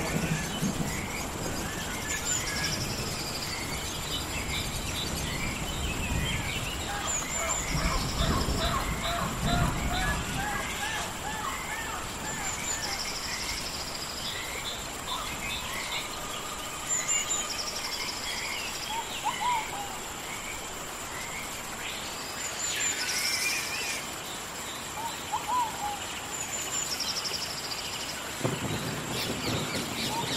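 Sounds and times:
deeper rumbling gusts: 0:00.0 - 0:21.9, 0:28.1 - 0:30.3
birdsong chirps trills and whistled calls: 0:00.0 - 0:30.3
rain hissing in a forest: 0:00.0 - 0:30.3.

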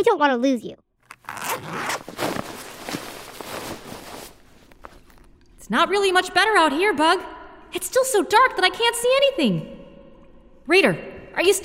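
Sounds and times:
speech: 0:00.0 - 0:02.0, 0:05.7 - 0:09.8, 0:10.7 - 0:11.6
zipper on a book bag being pulled open: 0:01.0 - 0:05.3.

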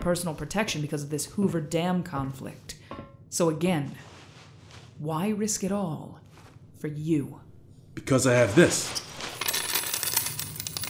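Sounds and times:
speech: 0:00.0 - 0:04.2, 0:05.0 - 0:06.2, 0:06.8 - 0:09.1
pile of money coins dropped: 0:09.0 - 0:10.8.

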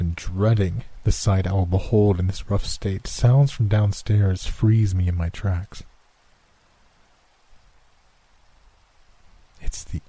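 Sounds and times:
rain: 0:00.0 - 0:10.0
speech: 0:00.2 - 0:05.9, 0:09.6 - 0:10.0.

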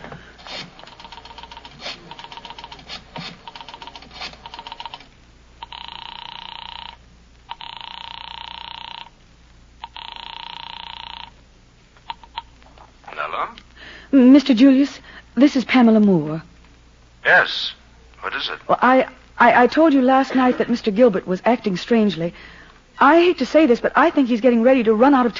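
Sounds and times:
telephone bell ringing: 0:04.6 - 0:05.0, 0:05.6 - 0:09.1, 0:09.8 - 0:11.4
speech: 0:14.1 - 0:16.5, 0:17.2 - 0:25.3.

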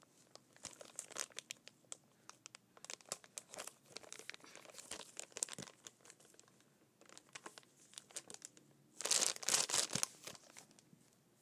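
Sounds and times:
plastic water bottle wrapper crinkling and crumpling: 0:00.3 - 0:10.8.

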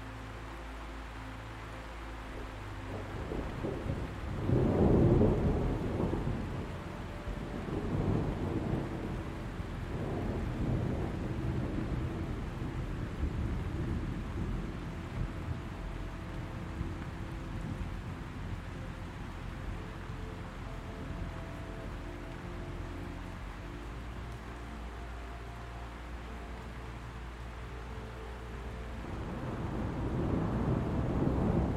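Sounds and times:
soft low sustained musical drone: 0:00.0 - 0:31.7
steady hiss of rain: 0:00.0 - 0:31.7
thunder rumbling: 0:02.9 - 0:23.5, 0:28.4 - 0:31.7.

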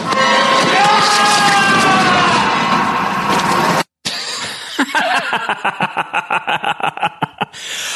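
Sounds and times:
scream with added reverb: 0:00.1 - 0:03.6
laughter: 0:04.1 - 0:07.6.

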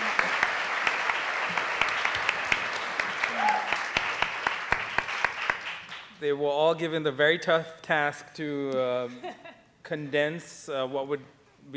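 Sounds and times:
audience applause for speakers: 0:00.0 - 0:06.1
speech: 0:06.2 - 0:11.7.

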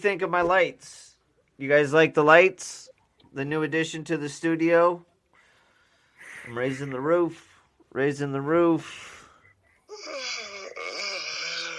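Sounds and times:
speech: 0:00.0 - 0:05.1, 0:06.4 - 0:09.1, 0:10.0 - 0:10.4
person yawning in a studio: 0:09.9 - 0:11.7.

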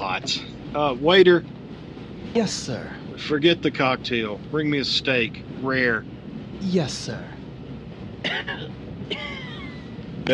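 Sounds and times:
steady low hum: 0:00.0 - 0:10.3
speech: 0:00.2 - 0:01.6, 0:02.3 - 0:07.3, 0:08.3 - 0:09.4
man coughing in harsh rasping bursts: 0:08.2 - 0:09.6.

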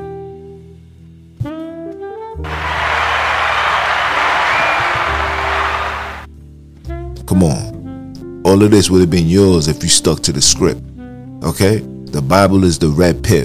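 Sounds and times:
audience applause: 0:02.5 - 0:06.3
speech: 0:07.3 - 0:07.7, 0:08.5 - 0:13.4.

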